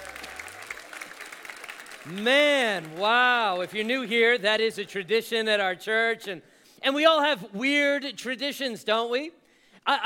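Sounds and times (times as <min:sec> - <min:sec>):
church audience applauding: 0:00.0 - 0:04.4
speech: 0:02.0 - 0:10.0.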